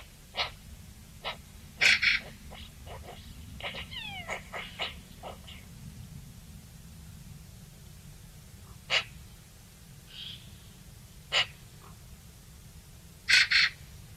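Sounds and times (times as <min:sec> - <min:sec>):
Eurasian magpie Pica pica chattering: 0:01.2 - 0:05.6, 0:08.9 - 0:09.2, 0:13.3 - 0:13.8.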